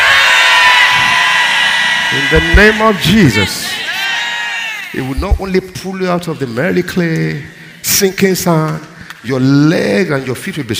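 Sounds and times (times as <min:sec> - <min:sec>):
audience shouting amen: 0:00.0 - 0:05.2
speech: 0:02.1 - 0:03.7, 0:04.9 - 0:10.7.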